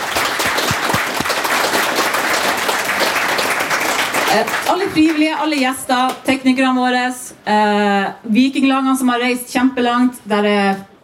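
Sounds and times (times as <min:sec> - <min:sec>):
audience applause: 0:00.0 - 0:05.4
speech: 0:04.3 - 0:10.9.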